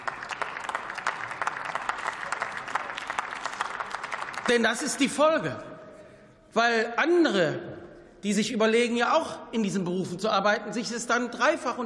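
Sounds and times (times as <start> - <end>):
audience applause: 0.0 - 4.7
speech: 4.5 - 5.7, 6.5 - 11.8.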